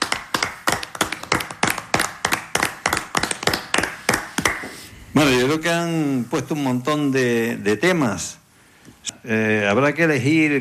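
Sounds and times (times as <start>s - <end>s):
crowd clapping: 0.0s - 4.8s
speech: 5.2s - 8.4s, 9.2s - 10.5s.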